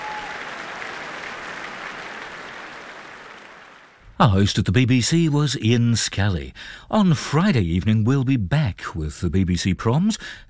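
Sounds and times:
concert audience applause: 0.0s - 4.0s
speech: 4.2s - 10.4s.

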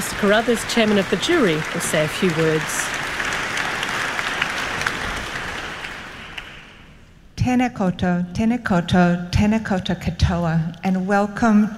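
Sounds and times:
audience applause: 0.0s - 6.9s
speech: 0.1s - 3.0s, 7.4s - 11.7s.

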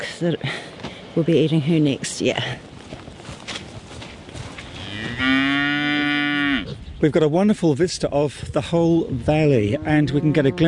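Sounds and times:
speech: 0.0s - 2.7s, 7.0s - 10.6s
outdoor noise: 0.0s - 10.6s
cow mooing: 4.8s - 6.7s, 9.7s - 10.6s.

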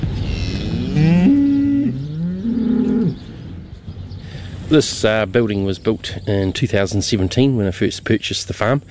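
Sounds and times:
dairy cows mooing in a barn: 0.2s - 3.2s
speech: 4.7s - 8.8s.

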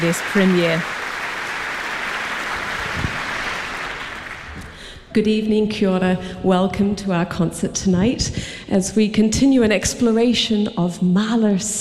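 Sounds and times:
speech: 0.0s - 1.0s, 5.2s - 11.8s
concert audience applauding the orchestra: 0.0s - 4.8s.

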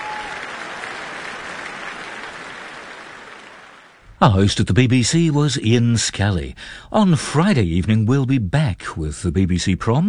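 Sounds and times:
concert audience applause: 0.0s - 4.0s
speech: 4.2s - 10.0s.

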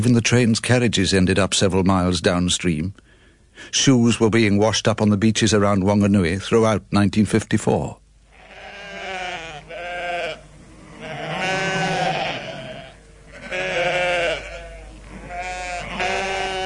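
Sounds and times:
speech: 0.0s - 8.0s
flock of sheep bleating anxiously: 8.3s - 16.6s.

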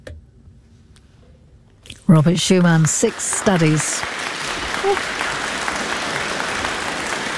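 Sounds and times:
speech: 2.1s - 4.2s, 4.8s - 5.3s
audience applause after a trio performance: 2.5s - 7.3s.

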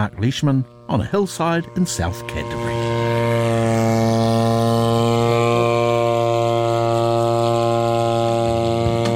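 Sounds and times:
speech: 0.0s - 2.8s
drone flying: 0.0s - 9.1s.

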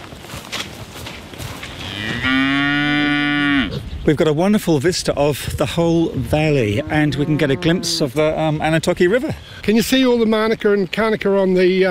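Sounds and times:
Hereford cow mooing: 1.8s - 3.8s, 6.6s - 8.4s
speech: 4.0s - 11.8s.

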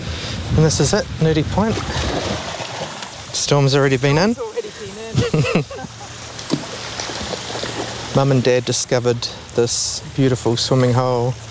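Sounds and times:
speech: 0.5s - 2.5s, 3.3s - 4.5s, 8.2s - 11.4s
river flowing: 1.7s - 11.4s
laughter: 4.5s - 6.3s.

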